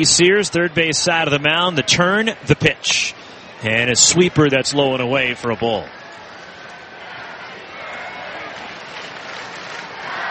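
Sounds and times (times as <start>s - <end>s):
speech: 0.0s - 6.0s
crowd singing a birthday song: 7.0s - 10.2s.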